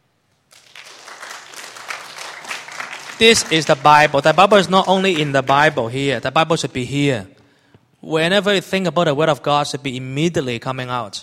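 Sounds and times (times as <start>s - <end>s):
audience applause: 0.5s - 6.1s
speech: 3.2s - 7.4s, 8.0s - 11.2s.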